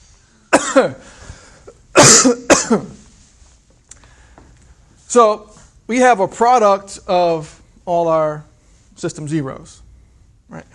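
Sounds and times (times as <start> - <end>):
harsh raspy coughs from breathing in chalk: 0.5 - 3.0
speech: 0.8 - 1.2, 2.0 - 3.0, 5.1 - 9.8, 10.5 - 10.7.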